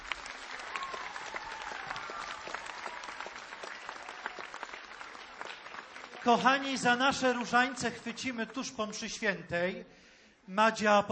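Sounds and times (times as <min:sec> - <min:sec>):
warm audience applause: 0:00.0 - 0:07.8
speech: 0:06.2 - 0:11.0.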